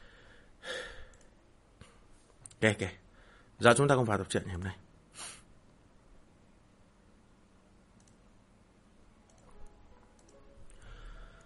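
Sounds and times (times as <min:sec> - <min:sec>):
deep breath: 0:00.0 - 0:01.3, 0:03.1 - 0:03.6, 0:10.7 - 0:11.4
speech: 0:02.6 - 0:03.0, 0:03.6 - 0:05.3.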